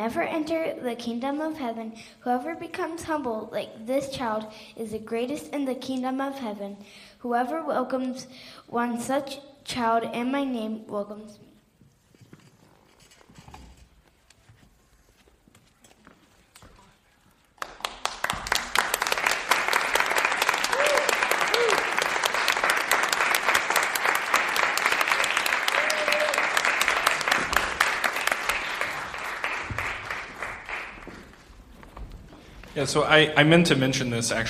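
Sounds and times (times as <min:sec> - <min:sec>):
speech: 0:00.0 - 0:11.5, 0:32.8 - 0:34.4
crowd applause, many hands clapping: 0:17.5 - 0:31.5.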